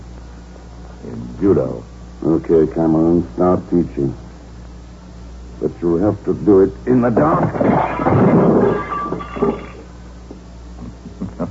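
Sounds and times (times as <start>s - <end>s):
speech: 1.0s - 4.2s, 5.6s - 8.8s
lamp being smashed: 7.2s - 9.9s.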